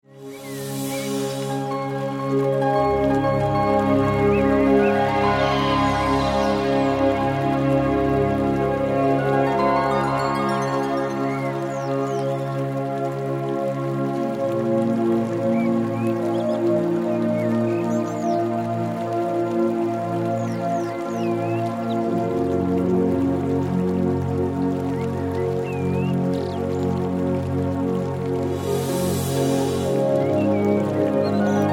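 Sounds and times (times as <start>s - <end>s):
relaxation music: 0.0s - 31.7s.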